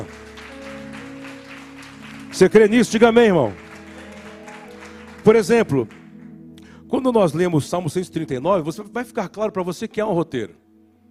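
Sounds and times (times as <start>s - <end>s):
audience applause: 0.0s - 6.2s
speech: 2.4s - 3.6s, 5.2s - 6.0s, 7.0s - 10.6s.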